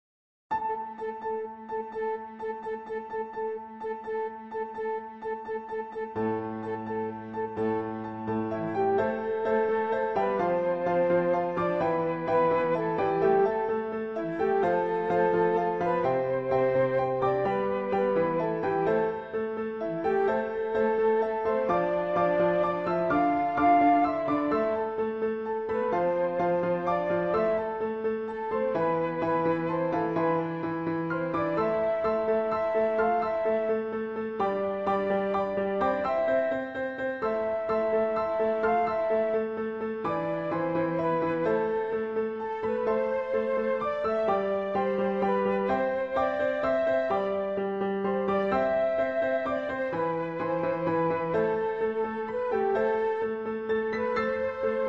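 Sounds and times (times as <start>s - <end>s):
easy flute melody: 0.5s - 54.8s.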